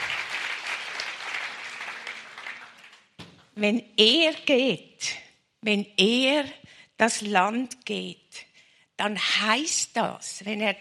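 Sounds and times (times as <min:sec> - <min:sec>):
audience applause at a church anniversary service: 0:00.0 - 0:03.1
speech: 0:03.6 - 0:10.7.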